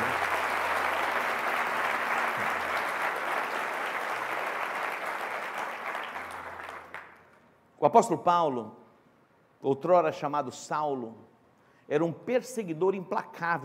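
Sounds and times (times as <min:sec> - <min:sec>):
audience applause: 0:00.0 - 0:07.2
speech: 0:07.8 - 0:08.8, 0:09.6 - 0:11.3, 0:11.9 - 0:13.6.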